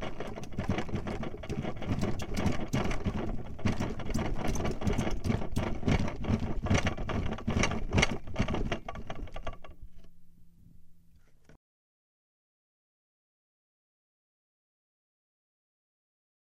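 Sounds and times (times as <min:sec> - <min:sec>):
everything shaking inside the house: 0:00.0 - 0:10.0.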